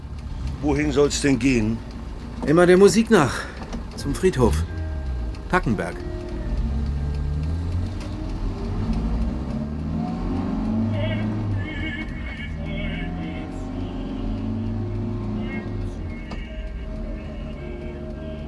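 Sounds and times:
taxi car driving and accelerating: 0:00.0 - 0:18.4
speech: 0:00.6 - 0:04.7, 0:05.5 - 0:06.2.

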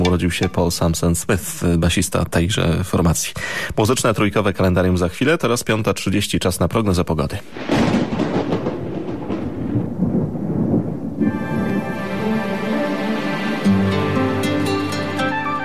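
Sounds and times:
speech: 0:00.2 - 0:07.8
low rolling thunder from a thunderstorm: 0:07.5 - 0:12.6
sustained tonal musical chord: 0:11.2 - 0:15.6.

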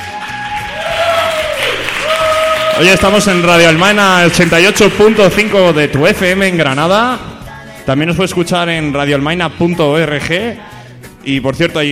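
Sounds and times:
applause: 0:00.0 - 0:06.2
speech: 0:02.8 - 0:07.3, 0:07.9 - 0:11.9.

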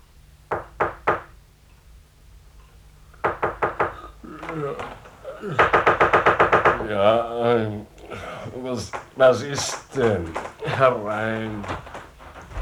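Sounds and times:
knocking on a bedroom door: 0:00.5 - 0:01.4, 0:03.2 - 0:04.0, 0:04.8 - 0:07.0, 0:08.8 - 0:12.6
laughter: 0:04.2 - 0:06.0, 0:06.6 - 0:12.6
speech: 0:04.5 - 0:06.0, 0:06.9 - 0:11.8.

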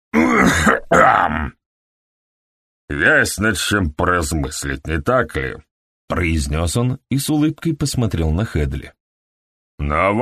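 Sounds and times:
person clearing throat: 0:00.2 - 0:01.6
speech: 0:00.4 - 0:01.6, 0:02.9 - 0:09.0, 0:09.8 - 0:10.1.

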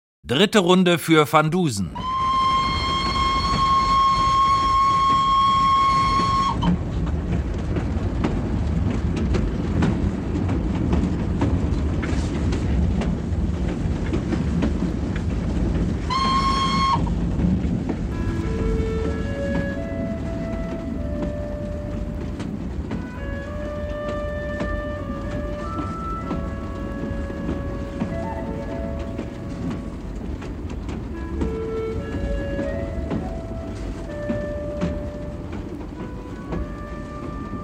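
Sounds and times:
speech: 0:00.2 - 0:02.2
express train from Bucharest to Constanța rattling along the rails: 0:00.3 - 0:37.6
shrill whistle: 0:02.1 - 0:06.7, 0:16.1 - 0:17.1.

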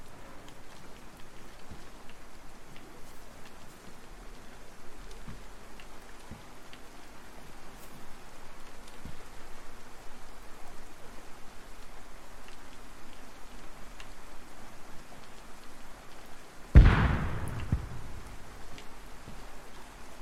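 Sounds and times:
hissing rain-like background: 0:00.0 - 0:20.2
video game grenade explosion: 0:16.8 - 0:18.6.

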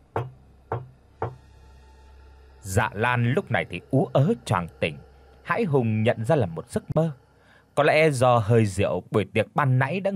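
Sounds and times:
dry sharp knocks as a story sound effect: 0:00.1 - 0:01.4
speech: 0:02.7 - 0:07.2, 0:07.8 - 0:10.1.

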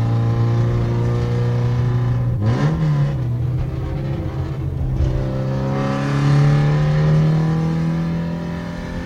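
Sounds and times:
car engine revving while driving: 0:00.0 - 0:09.0.

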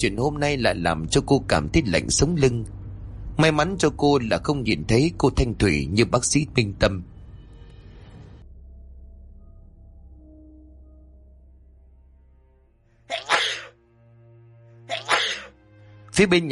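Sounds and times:
speech: 0:00.0 - 0:02.8, 0:03.4 - 0:07.1, 0:16.2 - 0:16.5
repeated sneezing: 0:13.1 - 0:13.8, 0:14.9 - 0:15.6.

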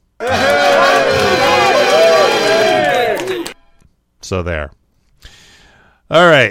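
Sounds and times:
scream sound effect of several overlapping voices: 0:00.2 - 0:03.6
speech: 0:04.3 - 0:04.8, 0:06.1 - 0:06.4.

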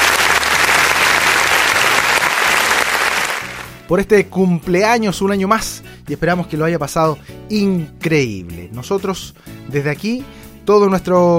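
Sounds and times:
crowd applauding: 0:00.0 - 0:03.8
speech: 0:03.9 - 0:11.3.

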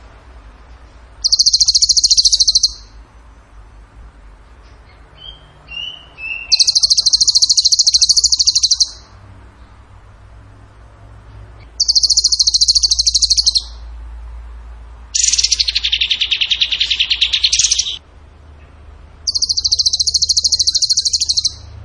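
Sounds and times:
bird song rattling trills: 0:01.2 - 0:02.9, 0:06.3 - 0:09.0, 0:11.8 - 0:13.8, 0:15.2 - 0:18.0, 0:19.2 - 0:21.6.

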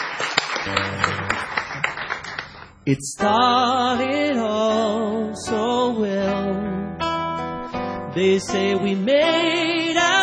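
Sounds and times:
audience clapping: 0:00.0 - 0:02.8
speech: 0:00.6 - 0:01.2, 0:02.9 - 0:07.0, 0:08.2 - 0:10.1
brief low tone: 0:00.7 - 0:01.8.

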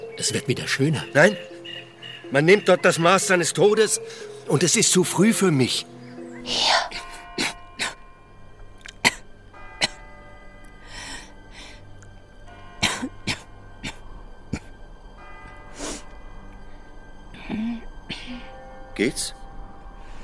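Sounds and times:
speech: 0:00.2 - 0:01.5, 0:02.3 - 0:07.0, 0:19.0 - 0:19.4
person coughing: 0:12.8 - 0:14.8.

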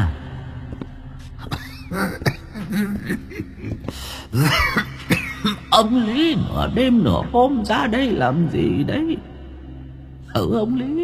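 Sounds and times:
old man's harsh wheezy coughing in a graveyard at midnight: 0:01.4 - 0:05.9
speech: 0:01.9 - 0:03.6, 0:05.8 - 0:09.3, 0:10.4 - 0:11.0.

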